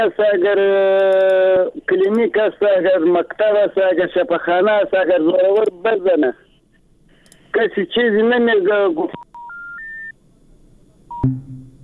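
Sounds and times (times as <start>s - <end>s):
speech: 0.0s - 6.5s, 7.5s - 9.2s
phone line tones: 9.4s - 10.1s.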